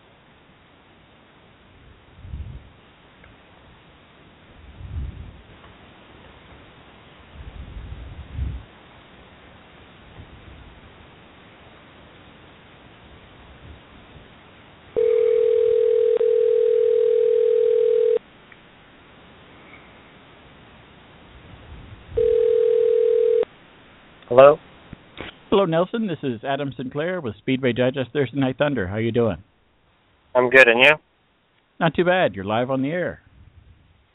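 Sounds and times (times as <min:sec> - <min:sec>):
telephone ringback over a muffled line: 0:15.0 - 0:18.2, 0:22.2 - 0:23.5
speech: 0:24.4 - 0:24.6, 0:25.6 - 0:29.5, 0:30.4 - 0:31.1, 0:31.8 - 0:33.2.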